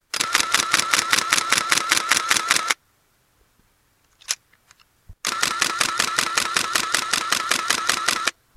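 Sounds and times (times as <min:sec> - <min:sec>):
Canon T90 camera shutter: 0:00.1 - 0:02.8, 0:05.2 - 0:08.4.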